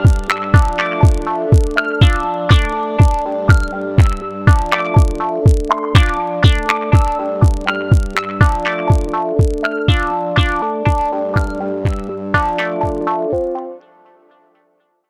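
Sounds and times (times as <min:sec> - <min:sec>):
minimal electronic song: 0:00.0 - 0:14.6.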